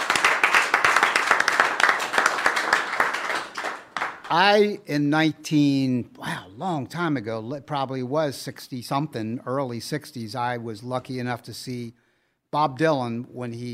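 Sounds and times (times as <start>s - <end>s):
audience applause: 0.0s - 4.4s
speech: 4.3s - 13.7s.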